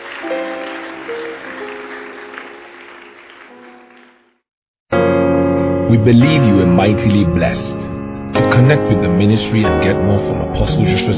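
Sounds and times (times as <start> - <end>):
audience clapping: 0.0 - 4.5
speech: 5.9 - 7.7, 8.5 - 11.1.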